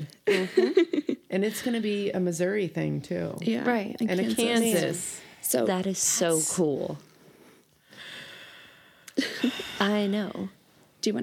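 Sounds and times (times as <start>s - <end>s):
speech: 0.3s - 7.1s, 9.2s - 11.2s
heavy breathing: 7.2s - 9.9s.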